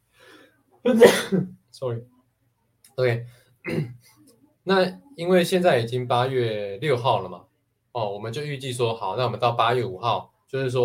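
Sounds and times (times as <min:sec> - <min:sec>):
speech: 0:00.8 - 0:02.2, 0:03.0 - 0:04.1, 0:04.7 - 0:10.8
person sneezing: 0:01.0 - 0:01.5.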